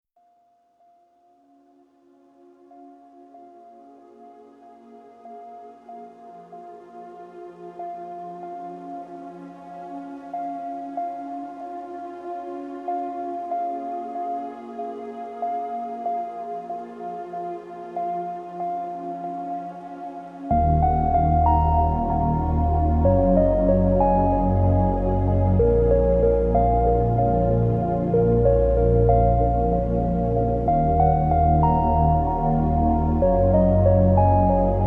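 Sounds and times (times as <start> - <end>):
melancholic ambient music: 0.8 - 34.8.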